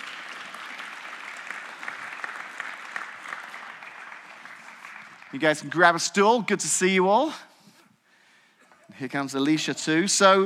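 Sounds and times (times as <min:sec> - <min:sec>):
audience applause: 0:00.0 - 0:05.8
speech: 0:05.3 - 0:07.5, 0:09.0 - 0:10.4.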